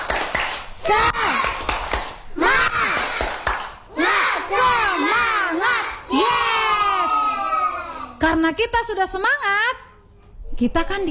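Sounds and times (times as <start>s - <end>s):
children's rhythmic clapping chant: 0.0s - 8.2s
speech: 8.4s - 9.7s, 10.6s - 11.1s.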